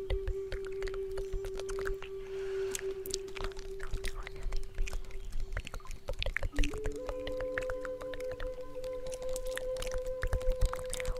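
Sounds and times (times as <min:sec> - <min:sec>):
native flute holding long notes: 0:00.0 - 0:11.1
faint breathy hiss: 0:02.1 - 0:06.3.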